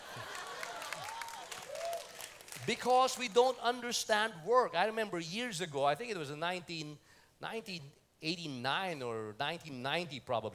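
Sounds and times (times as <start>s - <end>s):
women in an audience clapping: 0.0s - 2.8s
speech: 2.6s - 10.5s.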